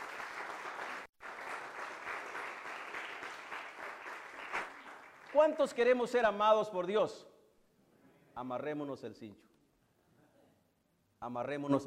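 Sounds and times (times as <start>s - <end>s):
congregation applauding during a Spanish-language church service: 0.0s - 6.2s
speech: 5.4s - 7.3s, 8.4s - 9.5s, 11.2s - 11.8s.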